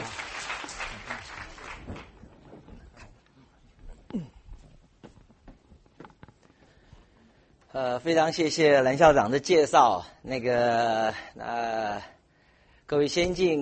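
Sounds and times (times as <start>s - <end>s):
warm applause: 0.0s - 2.2s
speech: 7.8s - 12.1s, 12.9s - 13.6s.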